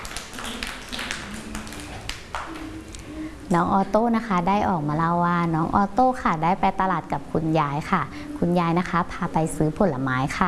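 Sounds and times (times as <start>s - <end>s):
group of children clapping hands: 0.0s - 2.8s
faint tonal hum: 0.0s - 10.4s
speech: 3.5s - 10.4s.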